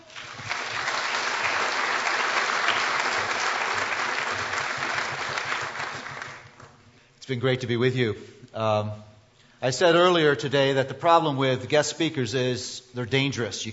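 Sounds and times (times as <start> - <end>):
audience at a Christian gathering applauding a guest speaker: 0.0 - 6.8
speech: 7.3 - 13.7.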